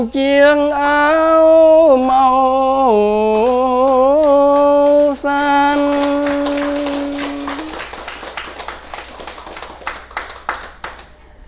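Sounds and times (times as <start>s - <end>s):
speech: 0.0s - 3.4s
audience applause at a Buddhist dharma talk: 4.2s - 11.1s.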